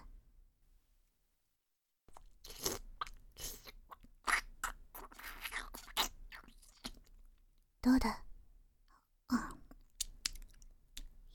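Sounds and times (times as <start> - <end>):
ear licking ASMR: 2.1 - 7.3, 9.7 - 10.7.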